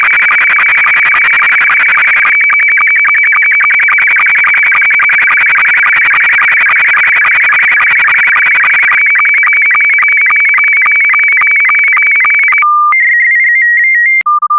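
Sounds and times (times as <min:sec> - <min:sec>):
SSTV analog S2 signal: 0:00.0 - 0:14.5.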